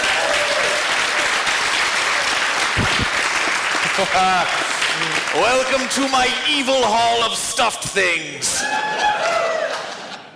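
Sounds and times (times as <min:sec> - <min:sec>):
audience applause for a volunteer: 0:00.0 - 0:07.0, 0:08.6 - 0:10.3
speech: 0:04.0 - 0:09.6.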